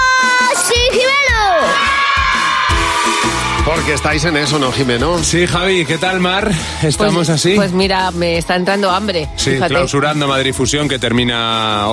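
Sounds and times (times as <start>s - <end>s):
children shouting: 0.0s - 4.6s
speech: 3.9s - 11.9s.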